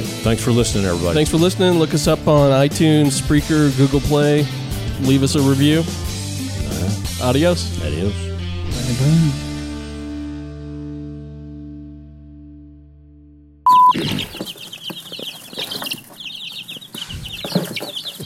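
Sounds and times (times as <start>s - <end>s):
baby chicks cheeping: 0.0s - 7.4s, 13.7s - 18.2s
speech: 0.2s - 6.0s, 6.8s - 8.3s, 8.9s - 9.5s.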